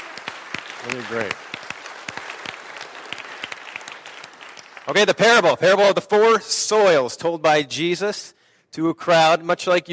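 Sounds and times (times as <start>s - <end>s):
audience applause: 0.0s - 5.2s
speech: 0.8s - 1.5s, 4.9s - 9.9s.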